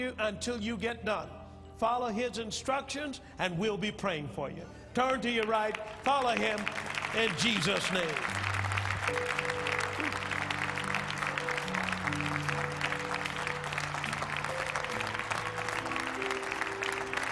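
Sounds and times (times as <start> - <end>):
speech: 0.0 - 8.4, 9.1 - 9.5
audience applause: 5.4 - 17.3.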